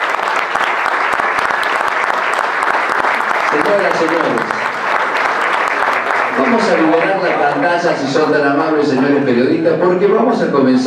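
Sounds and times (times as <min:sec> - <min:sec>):
audience applause: 0:00.0 - 0:09.7
speech: 0:03.6 - 0:04.6, 0:06.4 - 0:10.8.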